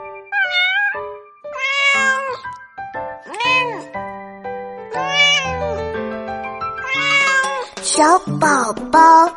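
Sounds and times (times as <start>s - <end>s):
cat meowing: 0.3s - 2.6s, 3.3s - 4.0s, 5.0s - 5.8s, 6.8s - 7.8s
speech: 8.0s - 9.3s.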